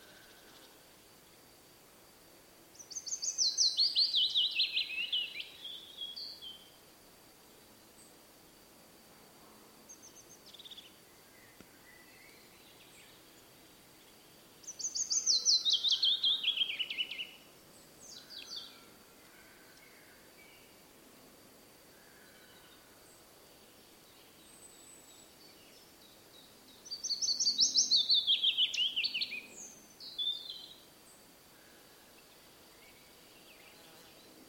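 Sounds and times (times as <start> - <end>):
willow warbler song: 2.7 - 6.8, 9.9 - 20.8, 22.1 - 34.4.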